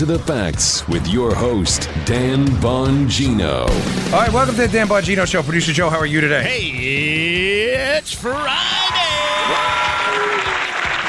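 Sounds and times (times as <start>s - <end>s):
speech: 0.0s - 10.2s
applause sound effect: 9.3s - 11.0s.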